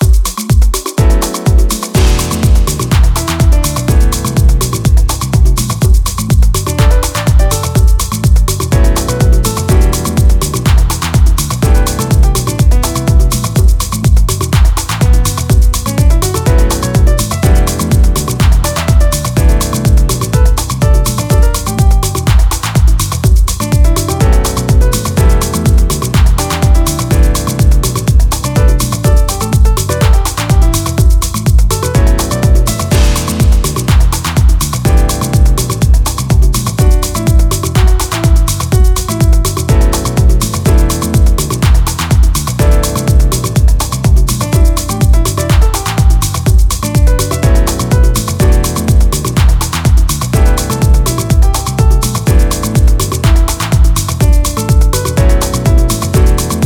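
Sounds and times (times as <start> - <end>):
piano instrumental: 0.0 - 56.6.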